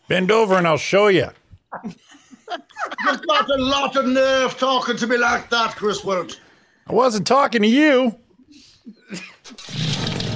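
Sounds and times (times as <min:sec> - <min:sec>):
speech: 0:00.1 - 0:02.2, 0:03.0 - 0:09.9
laughter: 0:01.8 - 0:05.8
chainsaw starting up: 0:09.4 - 0:10.3.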